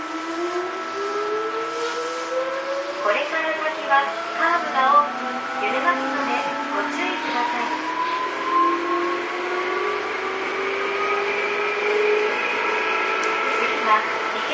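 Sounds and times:
Tobu 9000 series train motor whining as it accelerates: 0.0 - 14.5
low hum: 0.0 - 14.5.

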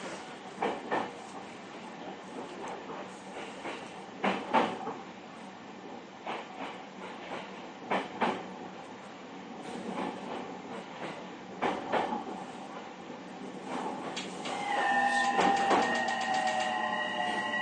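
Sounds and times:
JR East 231 series train running: 0.0 - 17.6
high squeal: 14.4 - 17.6
rising electric motor whines: 14.5 - 17.6.

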